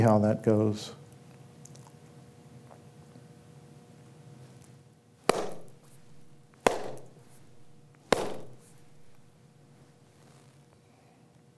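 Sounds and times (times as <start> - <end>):
hand claps starting meditation: 5.3 - 9.2.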